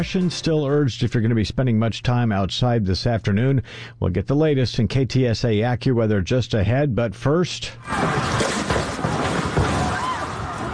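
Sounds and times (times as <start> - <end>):
speech: 0.0 - 8.6
people outside in chaos during earthquake: 7.8 - 10.7.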